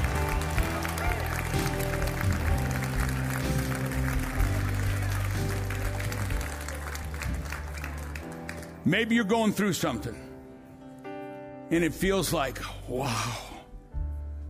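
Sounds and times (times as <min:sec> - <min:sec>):
audience clapping hands: 0:00.0 - 0:08.9
speech: 0:08.9 - 0:10.2, 0:11.7 - 0:13.5.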